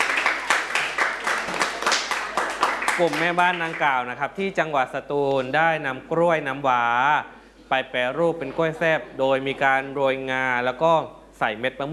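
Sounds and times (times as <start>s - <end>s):
students clapping for classmates: 0.0s - 4.0s
speech: 3.0s - 11.9s.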